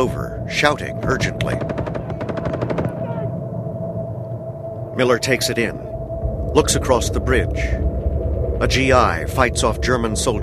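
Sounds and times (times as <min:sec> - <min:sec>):
speech: 0:00.0 - 0:02.8, 0:05.0 - 0:05.9, 0:06.5 - 0:07.9, 0:08.6 - 0:10.4
steady hum: 0:00.0 - 0:10.4
rapid rifle fire in a World War II battle in a war film: 0:01.5 - 0:03.0.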